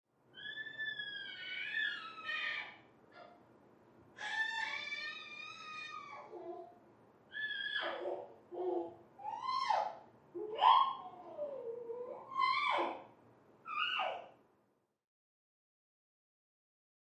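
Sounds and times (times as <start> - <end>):
baby squealing happily from next room: 0.4 - 3.3, 4.2 - 6.5, 7.4 - 13.0, 13.7 - 14.3.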